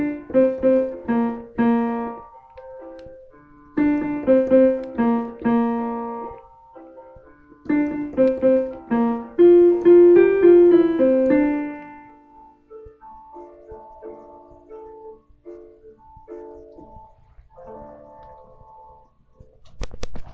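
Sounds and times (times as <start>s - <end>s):
alto voice: 0.0s - 2.2s, 3.8s - 6.4s, 7.7s - 12.2s.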